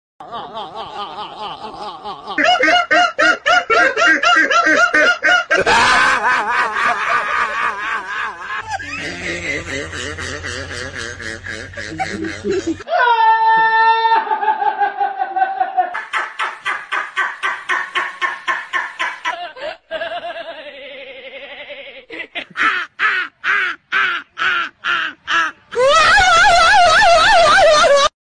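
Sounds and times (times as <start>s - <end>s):
contagious laughter: 0.2s - 28.1s.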